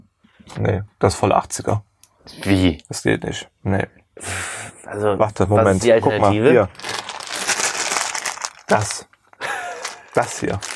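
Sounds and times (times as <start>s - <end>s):
speech: 0.5s - 6.9s, 8.7s - 9.1s, 10.1s - 10.7s
plastic candy bag rustling: 6.5s - 10.7s.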